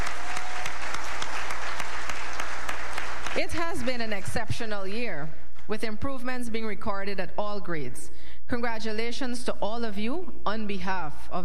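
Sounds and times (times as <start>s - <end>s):
applause: 0.0s - 4.5s
speech: 3.4s - 11.4s.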